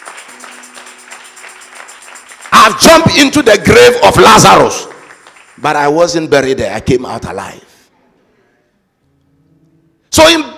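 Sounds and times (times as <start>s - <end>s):
audience applauding: 0.0s - 6.2s
speech: 2.7s - 4.9s, 5.6s - 7.7s, 10.2s - 10.5s.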